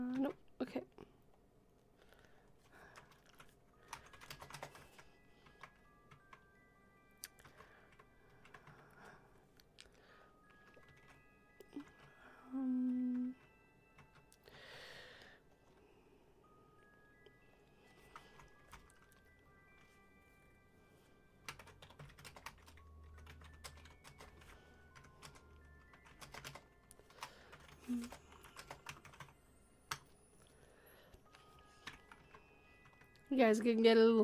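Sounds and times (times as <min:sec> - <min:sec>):
speech: 0:00.2 - 0:01.0, 0:33.4 - 0:34.2
typing on a computer keyboard: 0:02.6 - 0:06.4, 0:07.3 - 0:09.0, 0:10.6 - 0:12.2, 0:12.9 - 0:14.4, 0:18.1 - 0:19.2, 0:21.4 - 0:30.1, 0:31.3 - 0:33.3.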